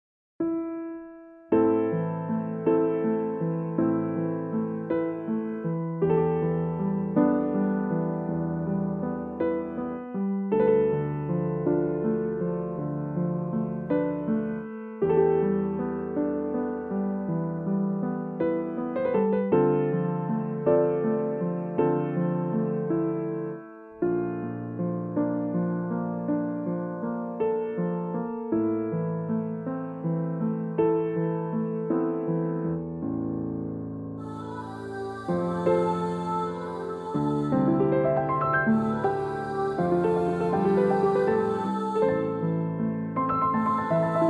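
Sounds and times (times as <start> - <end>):
piano: 0.4 - 44.2
vocal melody: 34.2 - 44.2.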